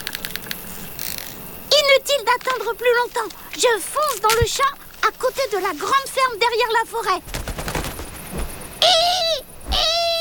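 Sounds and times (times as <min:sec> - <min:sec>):
speech: 0:02.1 - 0:07.4
faint low rustles: 0:06.9 - 0:09.8
barn owl calling: 0:07.2 - 0:10.1.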